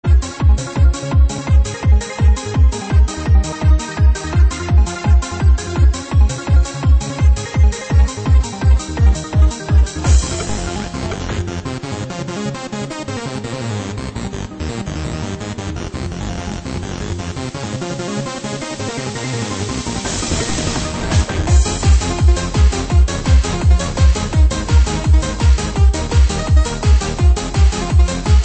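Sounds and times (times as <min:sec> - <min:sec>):
pop music: 0:00.0 - 0:28.4.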